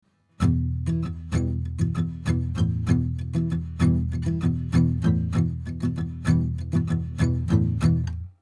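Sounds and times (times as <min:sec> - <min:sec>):
filtered acoustic guitar at the 15th fret: 0:00.4 - 0:08.4.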